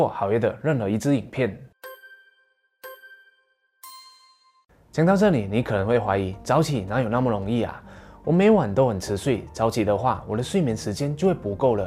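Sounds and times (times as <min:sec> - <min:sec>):
speech: 0:00.0 - 0:01.7, 0:05.0 - 0:11.8
notification bell ding sound effect: 0:01.8 - 0:04.7.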